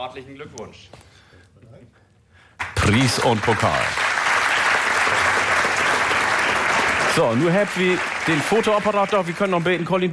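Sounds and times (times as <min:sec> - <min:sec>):
speech: 0:00.0 - 0:01.2, 0:02.9 - 0:04.2, 0:07.2 - 0:10.1
crowd applause after a prize and trophy presentation: 0:02.6 - 0:10.1.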